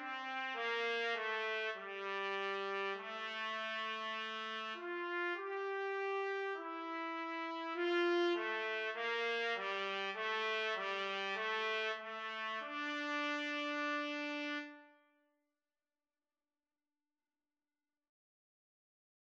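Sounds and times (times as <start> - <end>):
trumpet duet: 0.0 - 15.0.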